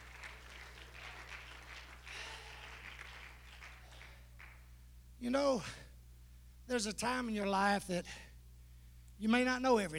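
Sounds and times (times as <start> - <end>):
audience clapping hands: 0.0 - 4.7
speech: 5.2 - 5.8, 6.7 - 8.3, 9.2 - 9.9.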